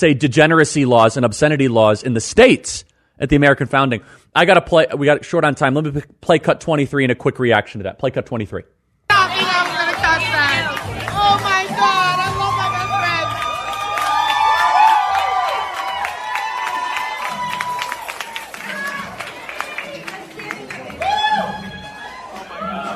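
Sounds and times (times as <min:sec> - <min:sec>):
speech: 0:00.0 - 0:09.4
parents applauding: 0:09.1 - 0:22.9
parents cheering enthusiastically: 0:09.1 - 0:22.9.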